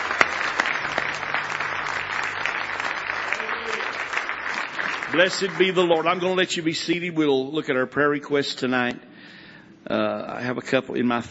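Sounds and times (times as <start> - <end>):
audience clapping: 0.0 - 6.7
speech: 5.1 - 9.1, 9.9 - 11.3.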